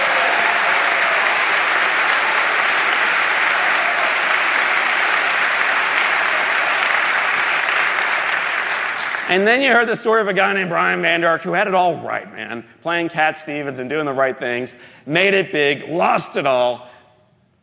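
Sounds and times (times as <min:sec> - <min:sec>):
applause from a large audience: 0:00.0 - 0:09.4
speech: 0:09.3 - 0:16.9.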